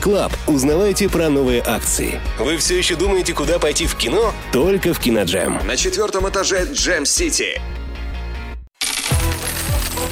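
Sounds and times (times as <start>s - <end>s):
speech: 0.0s - 7.8s
coins jingling: 8.8s - 10.0s.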